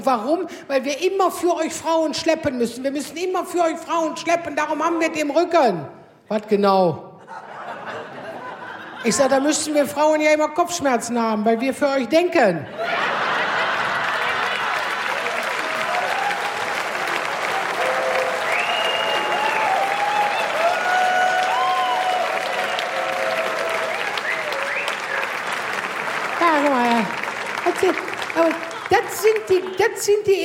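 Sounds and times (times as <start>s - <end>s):
speech: 0.0s - 8.1s, 9.0s - 13.2s, 30.0s - 30.4s
laughter: 7.2s - 9.5s, 12.7s - 15.9s
large audience applause: 12.9s - 29.9s
voices calling out and cheering: 13.0s - 29.8s.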